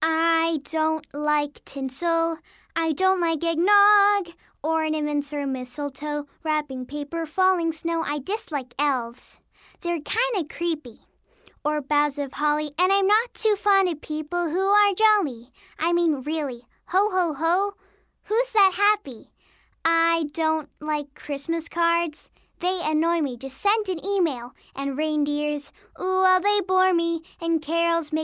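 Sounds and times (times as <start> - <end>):
girl singing in English: 0.0 - 28.2.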